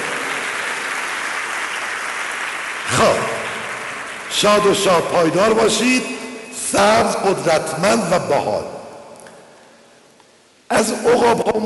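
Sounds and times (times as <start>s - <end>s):
applause for a deaf performing group at a seminar: 0.0s - 5.8s
speech: 4.3s - 8.8s, 10.8s - 11.6s.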